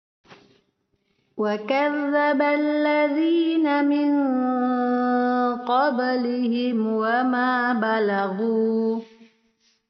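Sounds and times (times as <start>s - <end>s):
denoised karaoke recording: 1.4s - 9.1s.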